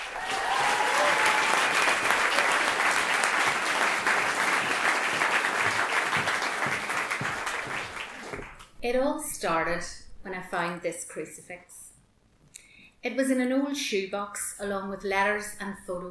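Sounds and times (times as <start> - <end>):
audience applause: 0.0 - 8.6
speech: 8.8 - 11.8, 13.0 - 16.0.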